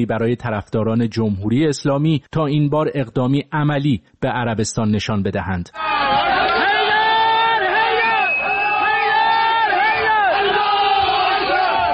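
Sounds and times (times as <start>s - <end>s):
speech: 0.0s - 6.2s
crowd of attackers cheering and shouting storming the Saudi embassy in Tehran: 5.8s - 11.9s.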